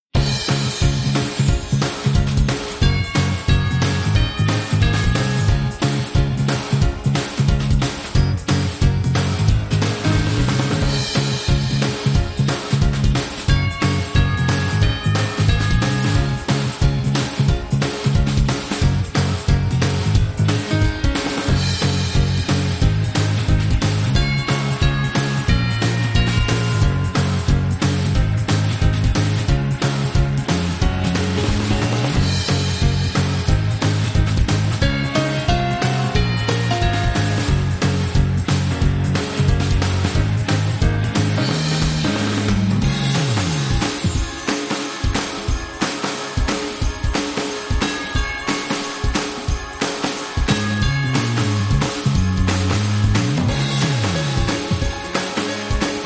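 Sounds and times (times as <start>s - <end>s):
joyful Christmas tune: 0.1s - 56.0s.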